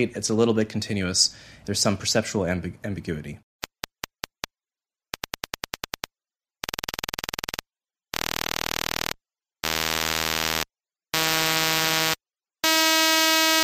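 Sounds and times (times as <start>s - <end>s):
speech: 0.0s - 3.4s
high-pitched buzz from rapidly repeated taps: 5.1s - 13.6s.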